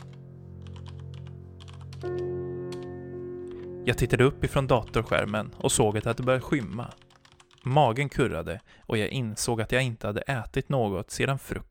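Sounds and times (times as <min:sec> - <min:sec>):
fast typing on a computer keyboard: 0:00.0 - 0:02.9, 0:03.5 - 0:08.9
speech: 0:02.0 - 0:02.4, 0:03.9 - 0:07.0, 0:07.6 - 0:11.6.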